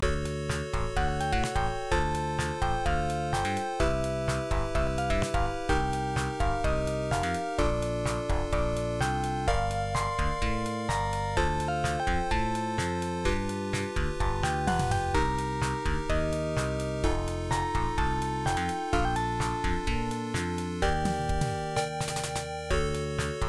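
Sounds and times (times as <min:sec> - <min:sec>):
in-game background music: 0:00.0 - 0:23.4.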